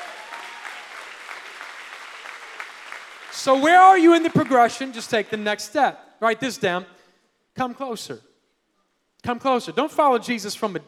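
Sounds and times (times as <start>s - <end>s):
crowd applauding: 0.0s - 5.0s
speech: 3.4s - 7.0s, 7.6s - 8.3s, 9.2s - 10.8s.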